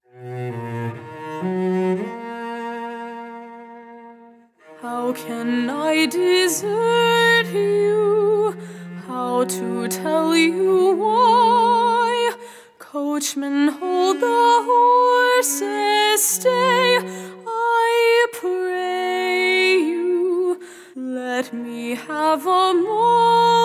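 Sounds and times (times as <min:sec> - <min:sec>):
person singing: 0:04.7 - 0:23.6.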